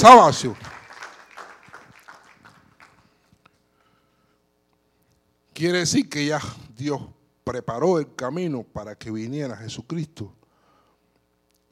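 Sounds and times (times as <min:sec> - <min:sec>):
speech: 0:00.0 - 0:00.7, 0:05.6 - 0:10.4
audience applauding in a room: 0:00.0 - 0:03.1.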